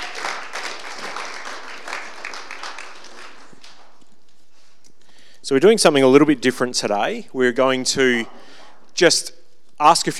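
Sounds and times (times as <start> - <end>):
crowd applauding: 0.0 - 4.0
speech: 5.5 - 8.4, 9.0 - 10.1.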